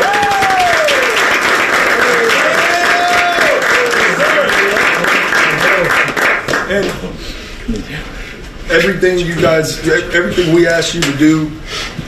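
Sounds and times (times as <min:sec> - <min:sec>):
round of applause: 0:00.0 - 0:07.0
speech: 0:07.7 - 0:08.1, 0:08.7 - 0:12.0.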